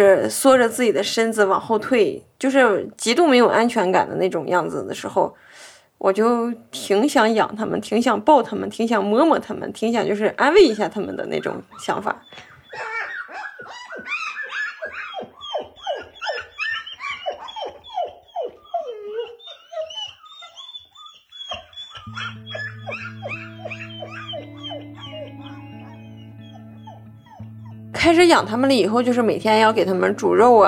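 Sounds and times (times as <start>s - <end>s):
speech: 0.0s - 13.0s, 28.0s - 30.6s
young grassland wolves howling: 10.6s - 30.6s
young grassland wolf pups whimpering and yelping: 10.8s - 27.9s.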